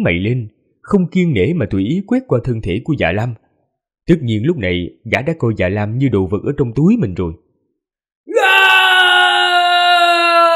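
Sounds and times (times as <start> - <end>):
speech: 0.0 - 3.4, 4.1 - 7.4
man shouting toward the sky: 8.3 - 10.5.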